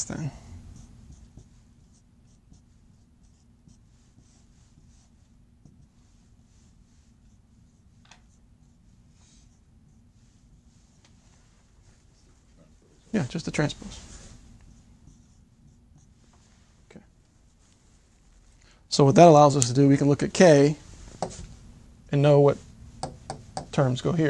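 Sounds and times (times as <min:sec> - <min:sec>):
speech: 0:00.0 - 0:00.4, 0:13.2 - 0:14.2, 0:19.0 - 0:21.4, 0:22.1 - 0:22.7, 0:23.8 - 0:24.2
low hum: 0:00.0 - 0:24.2
pen scratching on paper while working out matrix math: 0:00.7 - 0:10.9, 0:14.7 - 0:16.3.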